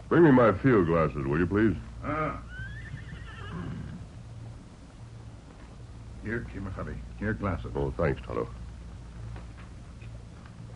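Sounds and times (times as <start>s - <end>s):
speech: 0.1s - 2.5s, 6.3s - 8.6s
horse neighing: 2.0s - 4.1s.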